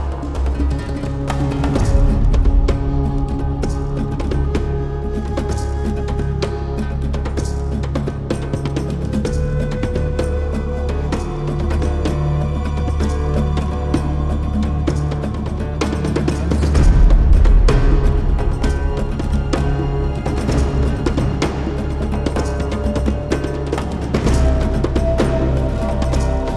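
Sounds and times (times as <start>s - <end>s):
action tribal percussion: 0.0s - 26.5s.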